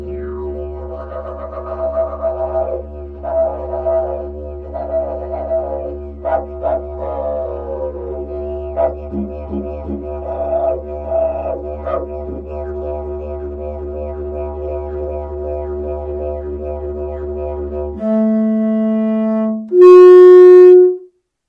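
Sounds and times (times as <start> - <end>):
PVC didgeridoo in D: 0.0 - 21.1.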